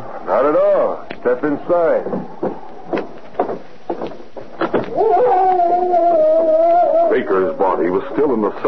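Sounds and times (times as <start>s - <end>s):
speech: 0.5s - 2.5s, 7.2s - 8.6s
dog howling: 4.9s - 7.3s.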